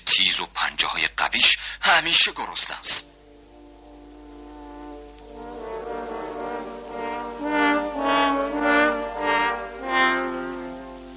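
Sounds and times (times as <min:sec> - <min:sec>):
speech: 0:00.2 - 0:03.2
three horns playing: 0:03.1 - 0:11.1.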